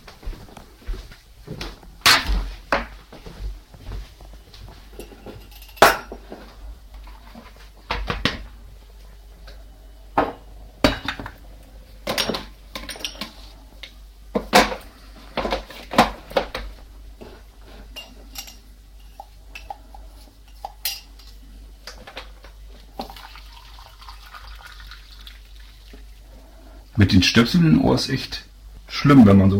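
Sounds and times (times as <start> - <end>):
low steady hum: 0.0 - 29.5
cups and dishes clinking while getting coffee: 4.9 - 6.5, 10.2 - 11.4, 12.0 - 13.5, 17.2 - 21.4
speech: 27.0 - 29.5.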